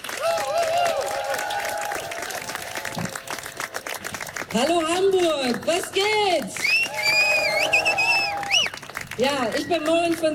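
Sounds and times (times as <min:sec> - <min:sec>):
audience applause: 0:00.0 - 0:04.7, 0:06.6 - 0:09.2
speech: 0:04.5 - 0:06.6, 0:09.2 - 0:10.3.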